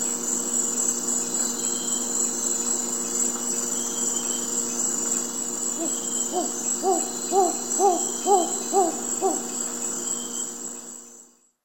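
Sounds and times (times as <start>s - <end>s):
mottled owl calling in South American eastern lowlands: 5.8s - 9.9s.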